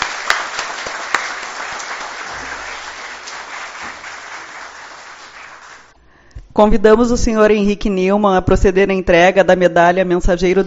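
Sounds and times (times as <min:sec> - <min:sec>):
crowd applauding: 0:00.0 - 0:05.9
speech: 0:06.6 - 0:10.6.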